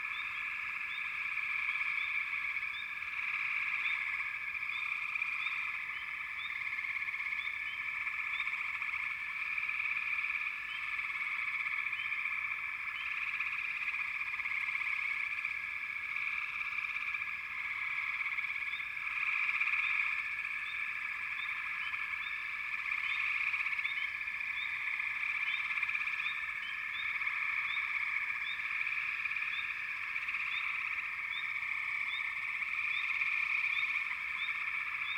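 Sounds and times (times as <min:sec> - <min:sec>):
frog chorus: 0:00.0 - 0:35.1.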